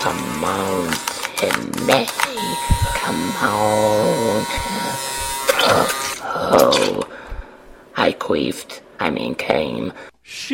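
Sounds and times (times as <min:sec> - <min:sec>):
speech: 0:00.0 - 0:05.1, 0:05.7 - 0:07.1, 0:08.3 - 0:10.5
electric shaver buzzing: 0:00.0 - 0:06.2.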